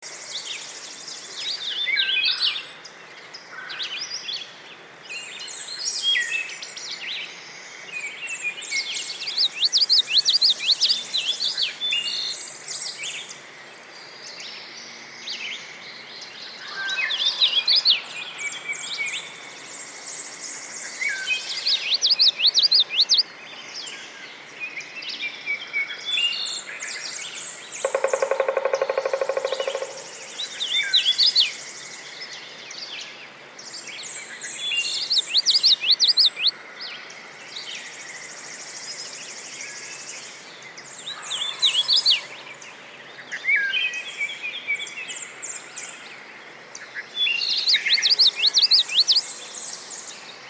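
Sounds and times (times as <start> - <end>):
birds singing in a forest: 0.0 - 50.4.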